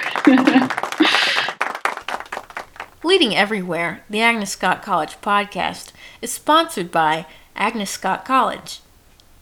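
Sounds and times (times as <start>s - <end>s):
laughter: 0.0s - 1.6s
audience applause: 0.0s - 3.0s
speech: 3.2s - 8.8s.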